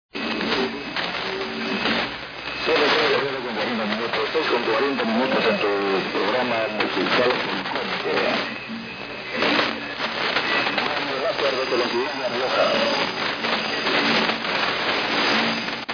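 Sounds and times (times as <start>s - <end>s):
radio: 0.1s - 15.9s.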